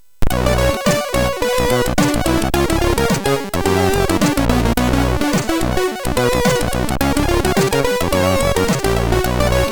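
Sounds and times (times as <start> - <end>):
jazz on MOS6581 sound chip: 0.2 - 9.7.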